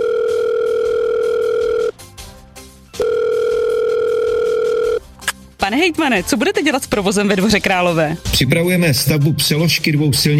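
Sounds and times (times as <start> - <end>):
telephone dial tone: 0.0 - 1.9, 3.0 - 5.0
speech: 5.8 - 10.3.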